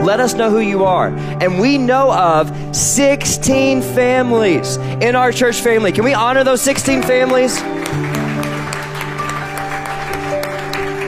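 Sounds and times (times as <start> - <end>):
speech: 0.1 - 8.0
audience applause: 6.7 - 11.0.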